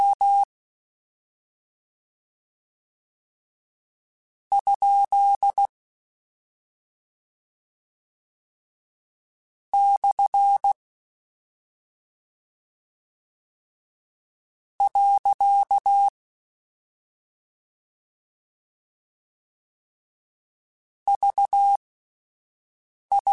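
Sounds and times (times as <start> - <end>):
Morse code CW code groups: 0.0 - 0.5, 4.5 - 5.7, 9.8 - 10.8, 14.8 - 16.1, 21.1 - 21.8, 23.1 - 23.3.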